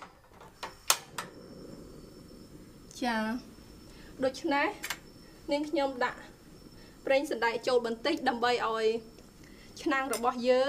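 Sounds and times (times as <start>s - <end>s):
gas stove igniter clicks: 0.6s - 1.3s, 4.8s - 5.1s
speech: 3.0s - 3.5s, 4.2s - 6.3s, 7.0s - 9.1s, 9.8s - 10.6s.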